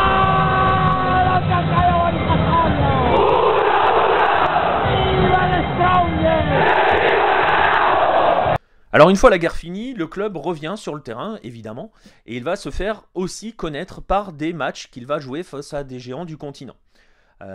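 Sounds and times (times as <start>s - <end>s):
football supporters roaring their war cry: 0.0s - 8.6s
speech: 8.9s - 16.8s.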